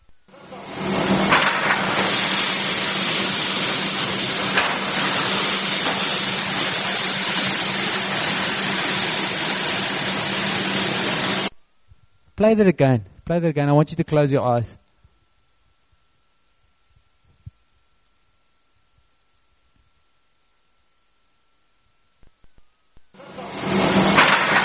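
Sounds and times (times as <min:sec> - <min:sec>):
harvested grain pouring into a silo: 0:00.4 - 0:11.5, 0:23.2 - 0:24.6
speech: 0:12.4 - 0:14.8.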